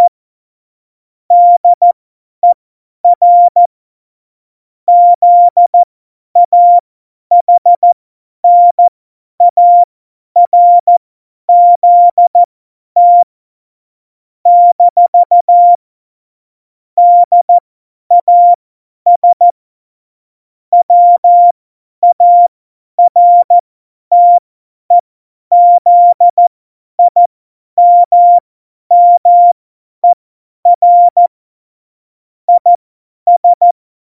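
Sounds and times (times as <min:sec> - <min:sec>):
CW Morse code beeps: 0:01.3 - 0:03.6, 0:04.9 - 0:05.7, 0:06.4 - 0:07.9, 0:08.5 - 0:13.3, 0:14.5 - 0:15.8, 0:17.0 - 0:17.5, 0:18.1 - 0:19.5, 0:20.8 - 0:31.3, 0:32.5 - 0:33.8.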